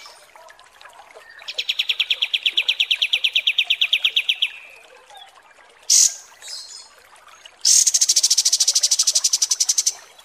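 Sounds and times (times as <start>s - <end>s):
bulbul singing: 1.4s - 4.8s, 7.7s - 10.1s.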